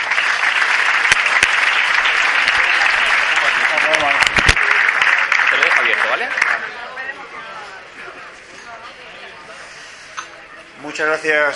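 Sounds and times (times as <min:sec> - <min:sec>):
audience applause: 0:00.0 - 0:07.2
speech: 0:11.0 - 0:11.5.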